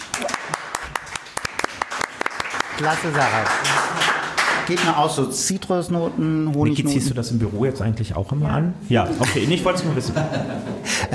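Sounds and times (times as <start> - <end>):
scattered clapping at a wine tasting for a wine princess: 0.0 - 5.2
speech: 2.8 - 3.9, 4.7 - 11.1
laughter: 9.0 - 11.1.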